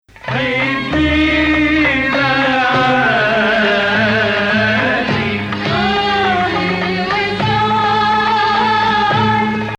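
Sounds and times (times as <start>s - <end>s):
Hijaz maqam melody: 0.1s - 9.7s.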